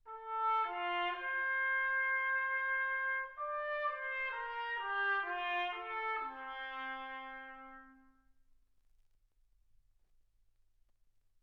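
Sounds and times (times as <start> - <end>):
trumpet: 0.0 - 8.4.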